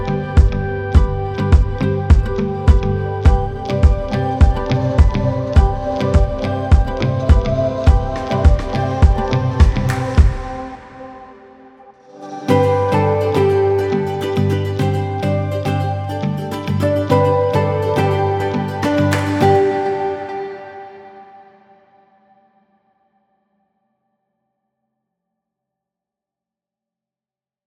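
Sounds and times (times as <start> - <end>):
happy summer music: 0.0 - 21.4.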